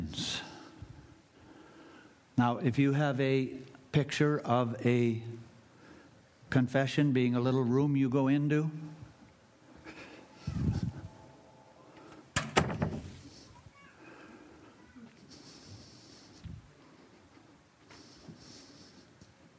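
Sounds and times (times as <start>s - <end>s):
low steady background: 0.0s - 19.5s
speech: 2.4s - 5.5s, 6.5s - 9.0s
open door knocking or swinging shut: 12.4s - 13.2s.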